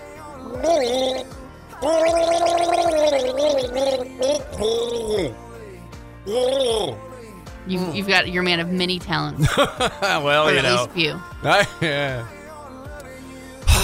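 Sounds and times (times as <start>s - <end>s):
voice gargling a tune: 0.4s - 5.4s, 6.3s - 7.0s
speech: 0.6s - 5.4s, 6.2s - 7.0s, 7.6s - 12.4s
laughter: 9.4s - 10.9s, 11.5s - 12.3s.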